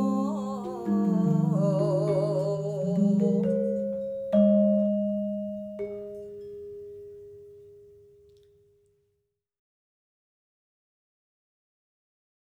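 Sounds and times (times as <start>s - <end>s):
gamelan kulit: 0.0s - 8.2s.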